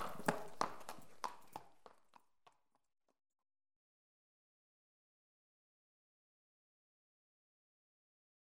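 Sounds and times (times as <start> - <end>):
horse hoofbeats clip-clop: 0.0 - 3.2.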